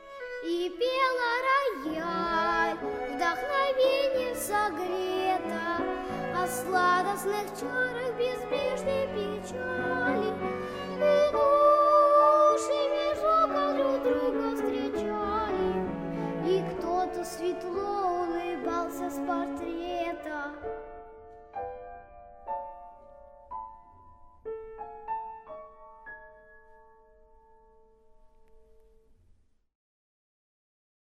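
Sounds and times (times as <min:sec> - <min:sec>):
cello: 0:00.0 - 0:21.0
piano: 0:00.0 - 0:29.4
child singing: 0:00.2 - 0:20.6.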